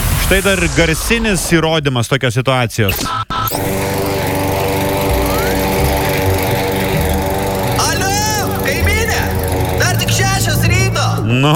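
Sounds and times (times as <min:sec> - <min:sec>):
speech: 0:00.3 - 0:03.8, 0:11.3 - 0:11.5
lawn mower cutting grass beside an apartment block: 0:03.5 - 0:11.5.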